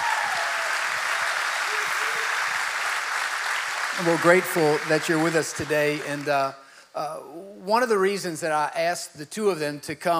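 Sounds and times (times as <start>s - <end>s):
audience applause: 0.0s - 6.5s
speech: 4.0s - 10.1s.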